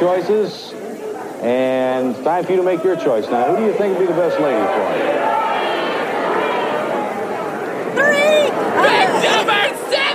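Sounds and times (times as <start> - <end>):
speech: 0.0 - 0.8, 1.4 - 5.5
audience members shouting over one another: 2.7 - 10.1.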